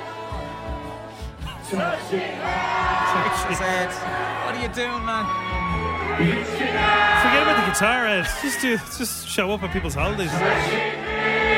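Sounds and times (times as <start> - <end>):
crowd cheering and whooping: 1.7 - 10.8
speech: 1.7 - 11.1.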